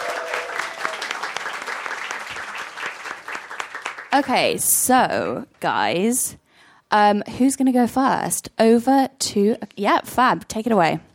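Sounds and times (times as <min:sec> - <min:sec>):
audience applause: 0:00.0 - 0:04.3
speech: 0:04.2 - 0:11.1.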